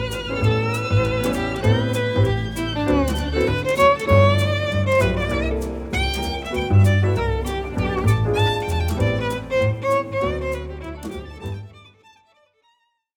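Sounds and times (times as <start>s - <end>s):
jazz violin: 0.0s - 12.4s.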